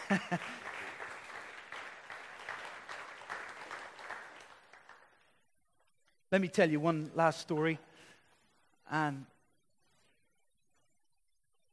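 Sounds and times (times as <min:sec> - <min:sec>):
audience applause: 0:00.0 - 0:05.2
speech: 0:00.1 - 0:00.6, 0:06.3 - 0:07.9, 0:08.9 - 0:09.3.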